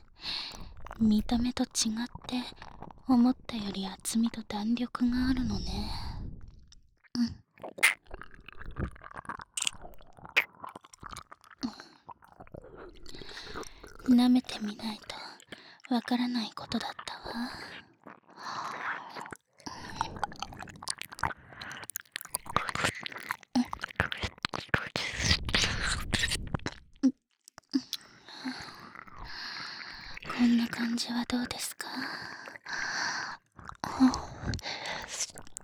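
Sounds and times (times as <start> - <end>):
woman whispering in an erotic audio drama: 0.0 - 6.4, 13.2 - 17.8, 23.6 - 26.5, 27.8 - 35.6
ear licking: 7.6 - 14.1, 18.0 - 26.8, 27.5 - 30.9, 32.3 - 35.6.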